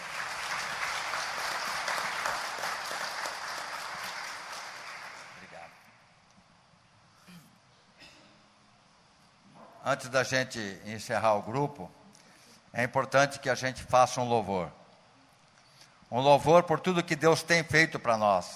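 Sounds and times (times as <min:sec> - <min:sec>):
group applause: 0:00.0 - 0:05.9
speech: 0:09.9 - 0:12.0, 0:12.8 - 0:14.8, 0:16.1 - 0:18.5.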